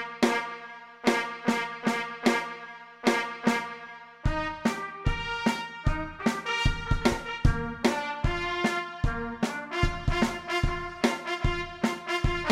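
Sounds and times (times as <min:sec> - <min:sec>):
trumpet: 0:00.0 - 0:12.5
drum kit: 0:04.3 - 0:12.5.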